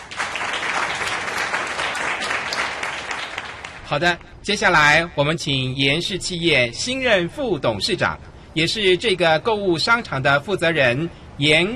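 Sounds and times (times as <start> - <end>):
audience applause: 0.0 - 3.8
speech: 3.9 - 11.7.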